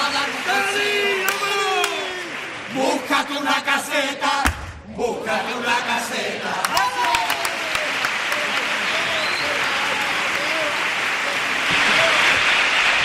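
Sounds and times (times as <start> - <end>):
audience applause after song: 0.0 - 3.6, 6.6 - 13.0
speech: 5.0 - 6.8.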